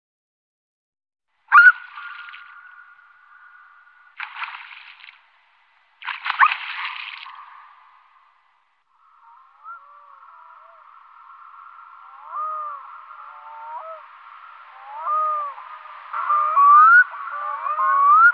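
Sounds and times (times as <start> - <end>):
black-throated loon calling: 1.5 - 4.2, 9.0 - 18.3.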